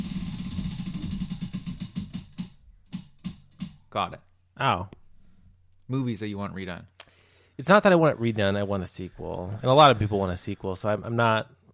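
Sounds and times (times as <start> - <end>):
prize wheel pointer ticking as the wheel spins: 0.0 - 3.8
speech: 3.9 - 5.0, 5.9 - 6.9, 7.6 - 11.6.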